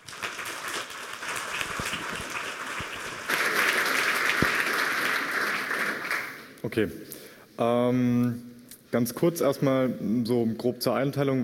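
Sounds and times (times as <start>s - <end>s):
audience applause: 0.0s - 6.6s
speech: 6.6s - 11.4s.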